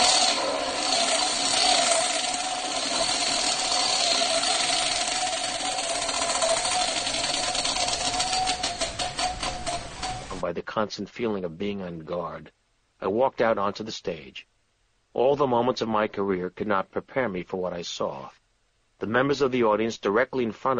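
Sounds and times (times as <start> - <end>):
prize wheel spinning: 0.0 - 10.4
speech: 10.8 - 14.5, 15.1 - 18.4, 19.0 - 20.7.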